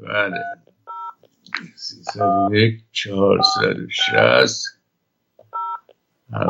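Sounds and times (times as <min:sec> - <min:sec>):
person speaking: 0:00.0 - 0:00.6, 0:01.3 - 0:04.8
touch-tone DTMF beeps dialing a phone number: 0:00.3 - 0:01.2, 0:03.4 - 0:04.3, 0:05.6 - 0:05.8.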